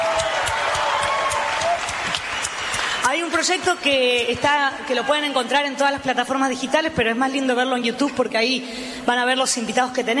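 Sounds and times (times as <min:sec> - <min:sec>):
audience applause: 0:00.0 - 0:03.9
speech: 0:03.4 - 0:10.1.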